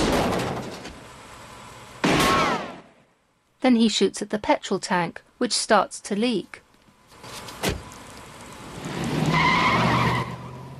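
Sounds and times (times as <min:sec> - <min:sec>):
henchman's car engine: 0:00.0 - 0:03.6, 0:06.7 - 0:10.7
speech: 0:03.6 - 0:06.6
tires skidding as a henchman's car drives off: 0:08.9 - 0:10.7.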